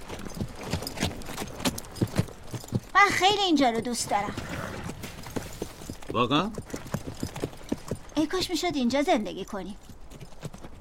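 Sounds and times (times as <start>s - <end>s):
horse hooves clip-clopping at a waterhole: 0.0s - 10.7s
speech: 3.0s - 4.6s, 6.1s - 6.8s, 8.2s - 9.8s.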